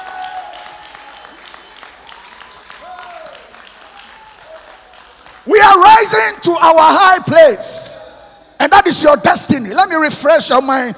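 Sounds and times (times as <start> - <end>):
audience clapping hands: 0.0 - 5.8
speech: 5.5 - 7.9, 8.6 - 10.9.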